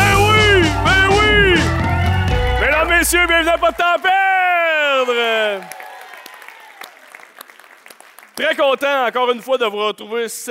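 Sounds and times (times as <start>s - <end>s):
faint cheers: 0.0s - 7.2s
audience applause: 0.0s - 9.1s
speech: 3.1s - 4.3s, 4.9s - 5.8s, 8.4s - 10.4s.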